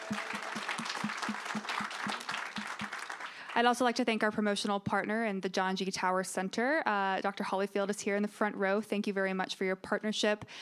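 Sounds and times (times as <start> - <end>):
audience applause: 0.0 - 3.6
one loud rhythmic clapper: 0.0 - 3.6
speech: 3.6 - 10.6.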